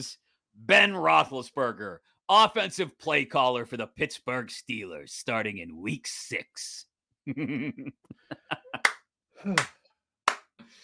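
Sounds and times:
speech: 0:00.0 - 0:09.8
laughter: 0:07.3 - 0:08.9
slow hand clap: 0:08.8 - 0:10.7.

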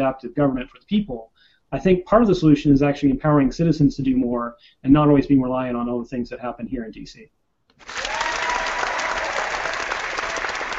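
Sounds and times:
speech: 0:00.0 - 0:08.0
sizable crowd applauding: 0:07.8 - 0:10.7.

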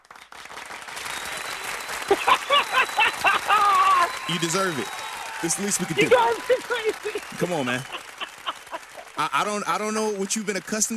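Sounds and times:
applause welcoming a talk show guest: 0:00.0 - 0:10.9
voices cheering: 0:00.8 - 0:10.9
laughter: 0:01.4 - 0:10.9
speech: 0:04.3 - 0:08.1, 0:09.2 - 0:10.9.

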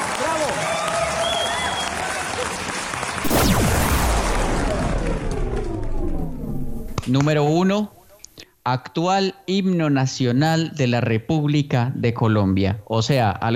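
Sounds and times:
audience applause: 0:00.0 - 0:06.8
speech: 0:07.1 - 0:08.0, 0:08.7 - 0:13.5.

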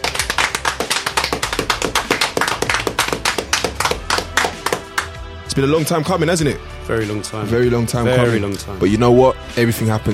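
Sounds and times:
hand clapping: 0:00.0 - 0:05.2
speech: 0:05.6 - 0:10.1.

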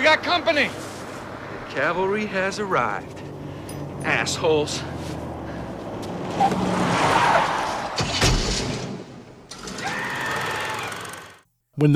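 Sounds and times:
speech: 0:00.1 - 0:00.8, 0:01.8 - 0:03.3, 0:04.0 - 0:05.1, 0:06.4 - 0:07.6, 0:11.8 - 0:11.9
plow truck ramming a car: 0:05.2 - 0:11.2.

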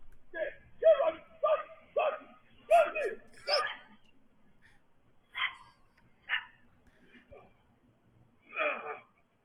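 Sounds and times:
yelps and whines: 0:00.8 - 0:04.0, 0:05.3 - 0:07.6, 0:08.4 - 0:09.4
coyote yipping while fighting a dog: 0:02.7 - 0:04.0, 0:05.3 - 0:06.6
dog barking while fighting a coyote: 0:02.7 - 0:04.0, 0:05.3 - 0:06.6.

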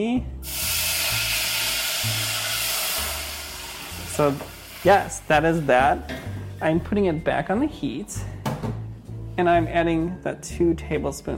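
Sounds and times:
speech: 0:00.0 - 0:00.6, 0:04.2 - 0:08.8, 0:09.4 - 0:11.3
wine sizzling poured into hot pot: 0:00.4 - 0:06.1.

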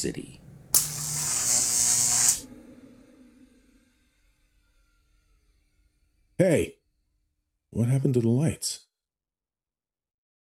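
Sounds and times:
speech: 0:00.0 - 0:00.4, 0:06.4 - 0:06.8, 0:07.7 - 0:08.9
low hum: 0:00.0 - 0:07.7
electricity crackling: 0:00.8 - 0:02.5.

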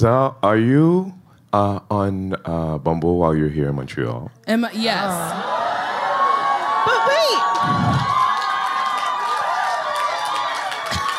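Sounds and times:
speech: 0:00.0 - 0:05.6, 0:07.2 - 0:08.2
audience clapping and cheering: 0:05.3 - 0:11.1.

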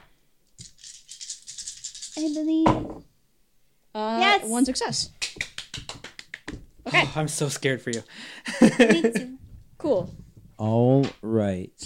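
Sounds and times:
dice being rolled: 0:00.6 - 0:02.5
speech: 0:02.2 - 0:03.1, 0:03.9 - 0:05.2, 0:06.9 - 0:11.8
laughter: 0:08.4 - 0:09.4.

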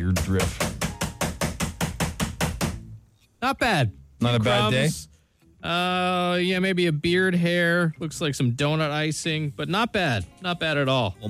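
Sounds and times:
keyboard banged on desk to empty debris: 0:00.0 - 0:02.8
speech: 0:00.2 - 0:00.7, 0:03.4 - 0:11.2.

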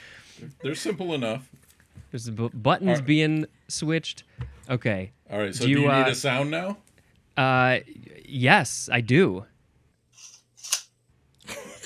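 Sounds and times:
speech: 0:00.4 - 0:09.5
tape measure being worked: 0:10.2 - 0:10.9.

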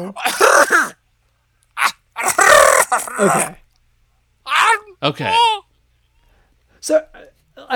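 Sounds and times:
speech: 0:00.0 - 0:01.0, 0:02.9 - 0:03.6, 0:05.0 - 0:05.6, 0:06.8 - 0:07.7
person vocally imitating howls and screams: 0:01.8 - 0:03.6, 0:04.5 - 0:05.6.

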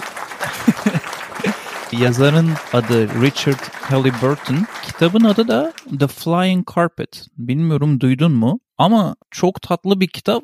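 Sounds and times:
laughter: 0:00.0 - 0:06.0
applause sound effect: 0:00.0 - 0:06.2
speech: 0:01.9 - 0:10.4.

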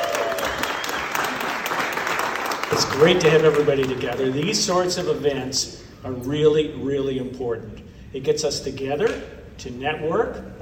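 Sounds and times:
audience applause at a networking event: 0:00.0 - 0:04.6
speech: 0:02.7 - 0:10.5.

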